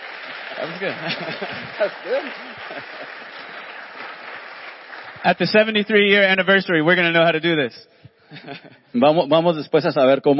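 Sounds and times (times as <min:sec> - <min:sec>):
audience clapping together: 0:00.0 - 0:07.1
speech: 0:00.6 - 0:03.5, 0:05.2 - 0:10.3.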